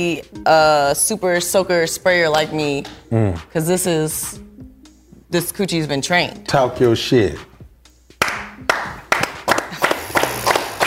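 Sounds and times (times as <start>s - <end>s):
speech: 0.0s - 4.5s, 5.3s - 7.5s
person clapping hands: 8.1s - 10.8s.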